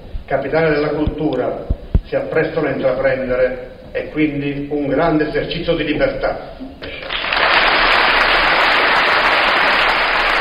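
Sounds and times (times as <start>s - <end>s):
speech: 0.3s - 7.1s
applause: 6.8s - 10.3s.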